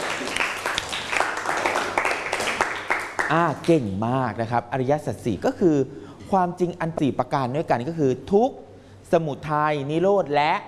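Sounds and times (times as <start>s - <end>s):
students clapping in a classroom: 0.0s - 3.4s
speech: 3.3s - 10.6s.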